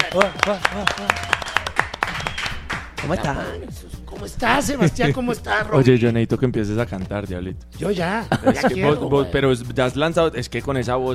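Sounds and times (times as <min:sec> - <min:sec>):
hand claps: 0:00.0 - 0:03.3
speech: 0:00.1 - 0:01.4, 0:03.0 - 0:11.1.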